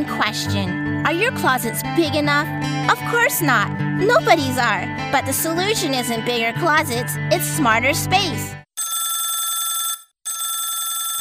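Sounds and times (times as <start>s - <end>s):
speech: 0.0s - 8.6s
telephone ringing: 8.8s - 11.2s.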